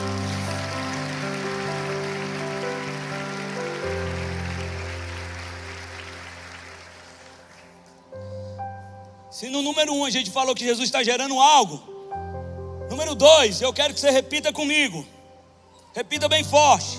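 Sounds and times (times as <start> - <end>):
audience clapping: 0.0 - 8.1
sustained keyboard chords: 0.0 - 16.9
speech: 9.4 - 11.9, 13.1 - 15.2, 16.0 - 16.9.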